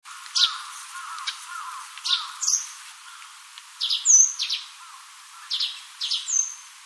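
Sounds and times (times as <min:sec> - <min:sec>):
russet sparrow song: 0:00.3 - 0:02.8, 0:03.8 - 0:06.7.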